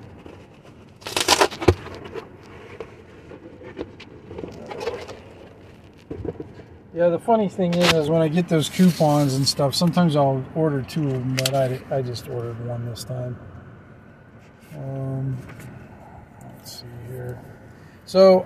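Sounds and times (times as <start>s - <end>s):
shipping package rip strip tearing: 1.0s - 1.8s
speech: 7.0s - 13.5s, 18.1s - 18.4s.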